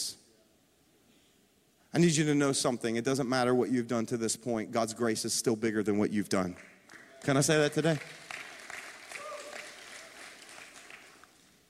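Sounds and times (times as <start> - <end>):
speech: 1.9 - 8.2
audience clapping: 6.5 - 11.6
audience cheering: 6.9 - 11.3.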